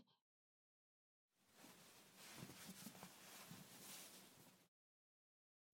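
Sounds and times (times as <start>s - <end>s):
reversed ASMR ear cleaning in the left ear: 1.6s - 4.6s.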